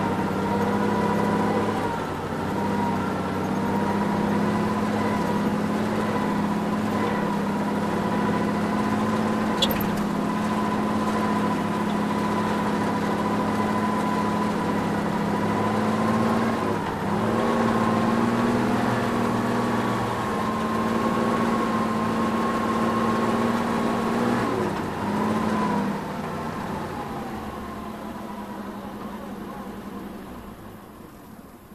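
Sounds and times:
tank driving heard from inside: 0.0s - 31.7s.

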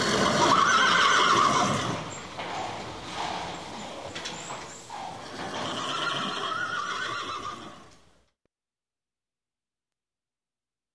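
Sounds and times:
horse whinny: 0.0s - 3.6s, 4.9s - 7.9s.

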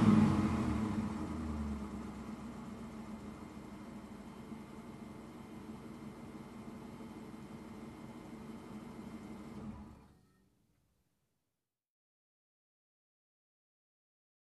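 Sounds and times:
car engine starting and revving: 0.0s - 4.8s, 7.9s - 10.1s.

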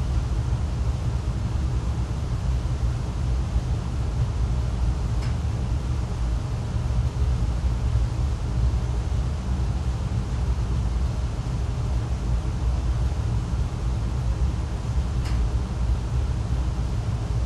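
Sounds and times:
quiet air conditioning hum: 0.0s - 17.4s.

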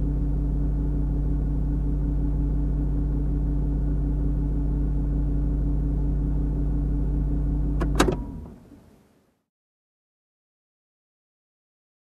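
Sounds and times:
car engine idling: 0.0s - 9.2s
car ignition: 7.5s - 8.9s.

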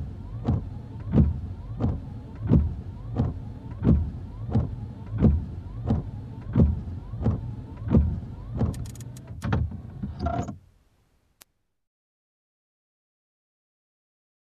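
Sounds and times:
windshield wiper: 0.0s - 10.6s.

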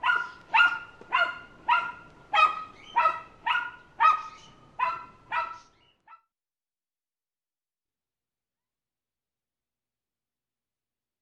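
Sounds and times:
small dog barking: 0.0s - 6.3s.

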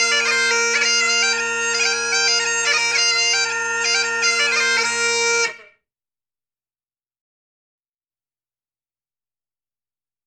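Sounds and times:
Irish bagpipes music: 0.0s - 5.7s.

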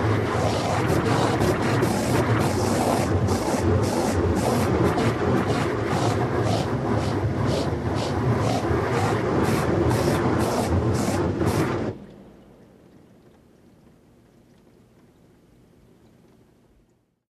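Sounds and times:
heavy detailing brush brushing: 0.2s - 11.9s.

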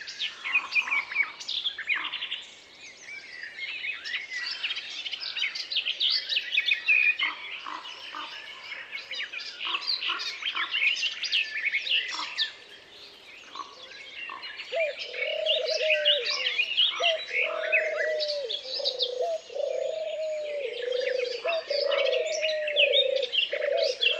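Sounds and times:
birds in a peaceful forest: 0.0s - 24.1s.

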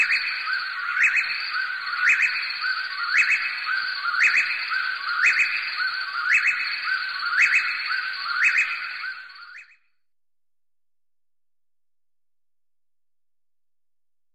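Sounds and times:
birds hooting and chirping: 0.0s - 9.7s.

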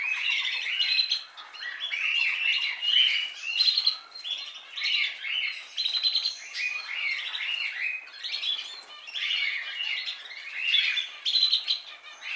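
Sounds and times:
birds chirping and whistling: 0.0s - 12.3s.

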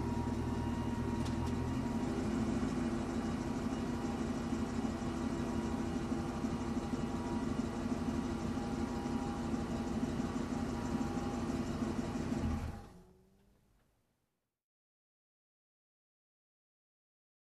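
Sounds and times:
truck engine ignition: 0.0s - 13.6s.

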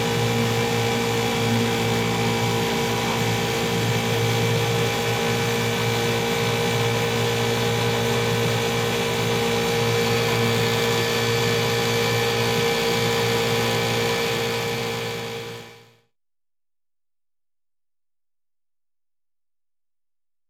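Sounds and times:
motorized boat engine thrust while riding: 0.0s - 16.0s.

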